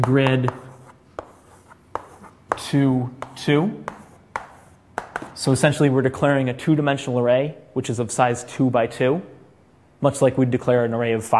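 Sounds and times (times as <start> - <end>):
speech: 0.0 - 0.6, 2.6 - 4.0, 5.4 - 9.3, 10.0 - 11.3
writing tool scratching while writing code by hand: 0.0 - 5.3
sharper taps of a writing tool: 3.2 - 5.4.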